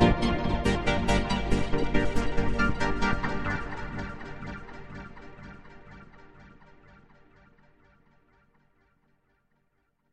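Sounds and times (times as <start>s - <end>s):
synth with LFO sync: 0.0s - 7.0s.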